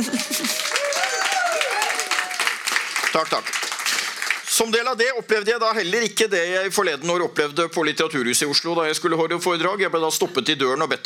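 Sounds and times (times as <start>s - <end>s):
laughter: 0.0s - 0.9s
audience applause: 0.0s - 4.6s
speech: 3.1s - 3.6s, 4.6s - 11.0s.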